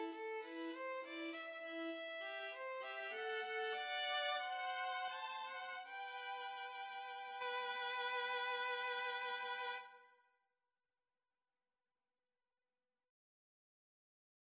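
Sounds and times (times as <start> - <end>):
string trio playing: 0.0 - 9.8.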